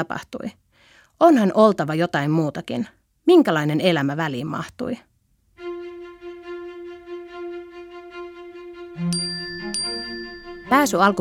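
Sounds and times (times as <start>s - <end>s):
speech: 0.0s - 0.6s, 1.2s - 5.1s, 10.7s - 11.1s
email arrival notification ding: 9.1s - 11.1s.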